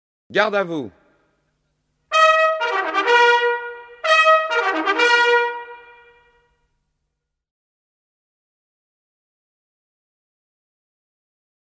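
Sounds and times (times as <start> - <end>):
cavalry trumpet: 2.1 - 6.6.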